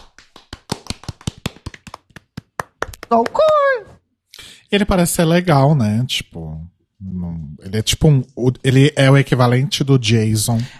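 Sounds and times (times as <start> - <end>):
hands clapping: 0.0 - 3.8
speech: 3.1 - 3.9, 4.7 - 10.7.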